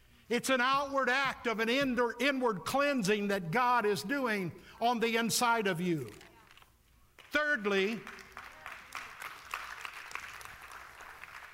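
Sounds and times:
speech: 0.3 - 6.3, 7.3 - 8.2
church congregation clapping weakly: 6.5 - 11.5.

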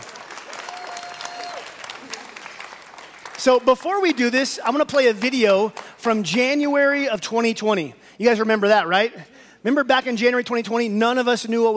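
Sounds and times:
audience applause: 0.0 - 4.3
speech: 3.4 - 11.7.

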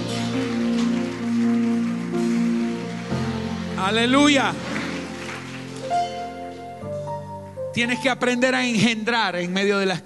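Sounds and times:
audience applause: 0.0 - 6.6
speech: 3.8 - 4.8, 7.8 - 10.0.

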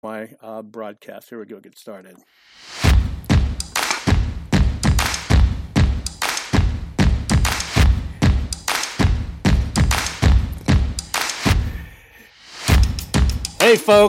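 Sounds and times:
speech: 0.0 - 3.2, 13.6 - 14.0
stomping and clapping: 3.3 - 8.0, 8.6 - 11.6.

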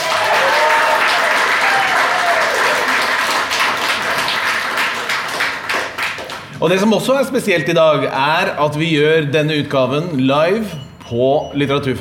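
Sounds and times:
audience applauding in a festival hall: 0.0 - 6.6
speech: 6.6 - 12.0.

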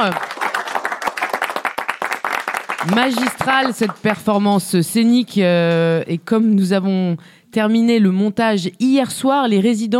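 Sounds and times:
speech: 0.0 - 0.3, 2.8 - 9.9
audience applause: 0.0 - 4.1.

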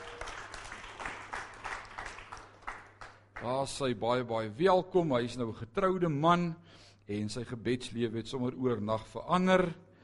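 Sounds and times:
audience clapping: 0.0 - 3.7
speech: 3.4 - 9.8.

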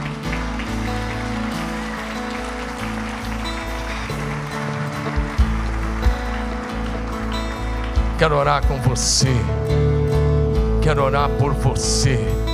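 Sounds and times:
large crowd applauding: 0.0 - 9.8
speech: 8.2 - 9.8, 10.8 - 12.4.

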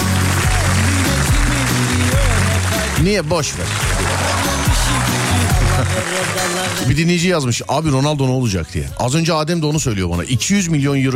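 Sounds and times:
applause: 0.0 - 7.4
speech: 3.0 - 11.1
laughter: 3.8 - 6.9.

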